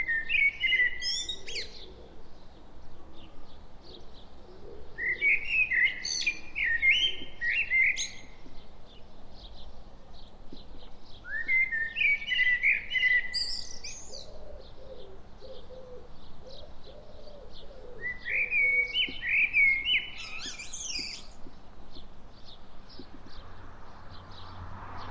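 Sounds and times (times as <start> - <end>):
common blackbird singing: 0.0 - 24.6
other birds chirping: 0.0 - 25.1
dove cooing: 0.6 - 8.0, 14.0 - 21.2.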